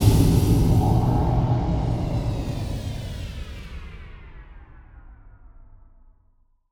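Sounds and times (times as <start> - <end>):
impact: 0.0 - 4.3.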